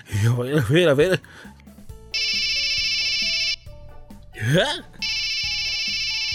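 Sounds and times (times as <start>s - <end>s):
speech: 0.1s - 1.6s, 4.4s - 4.9s
phone ringing: 2.1s - 3.7s, 5.0s - 6.3s.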